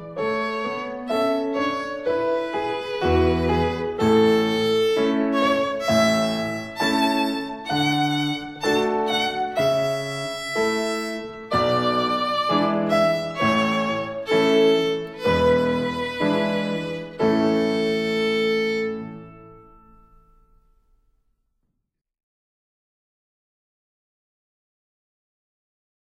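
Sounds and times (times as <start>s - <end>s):
violin practice playing slowly: 0.0s - 19.7s.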